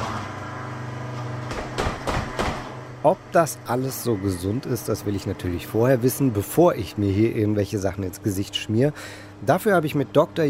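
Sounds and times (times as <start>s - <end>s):
electric blender mixing ingredients: 0.0s - 1.1s
clunks and rattles: 1.4s - 2.8s
speech: 3.0s - 10.4s.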